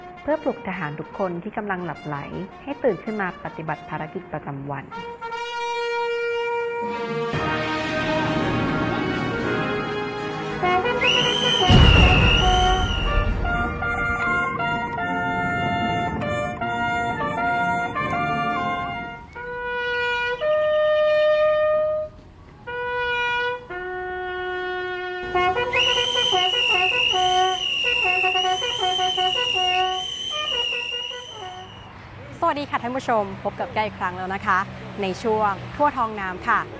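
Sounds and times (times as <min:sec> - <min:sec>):
speech: 0:00.2 - 0:05.3, 0:06.8 - 0:07.7, 0:33.0 - 0:36.7
lone signal bugler playing reveille to wake soldiers: 0:04.9 - 0:32.0.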